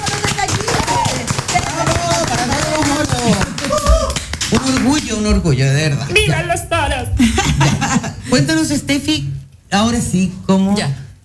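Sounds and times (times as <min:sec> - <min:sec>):
applause: 0:00.0 - 0:05.5
laughter: 0:00.0 - 0:08.7
speech: 0:05.2 - 0:11.0.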